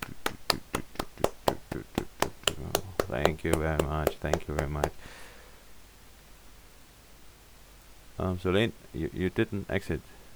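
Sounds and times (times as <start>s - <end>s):
audience clapping: 0.0s - 5.2s
speech: 3.2s - 5.3s, 8.2s - 10.2s.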